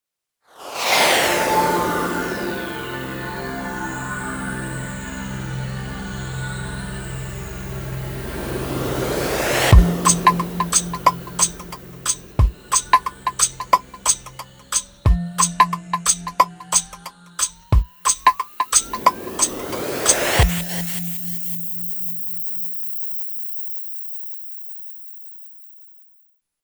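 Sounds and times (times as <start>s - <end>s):
meditation music bed: 1.6s - 21.1s.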